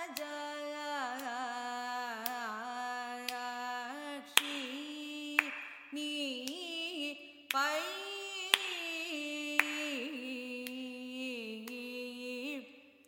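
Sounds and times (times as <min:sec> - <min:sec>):
carnatic music varnam: 0:00.0 - 0:13.0.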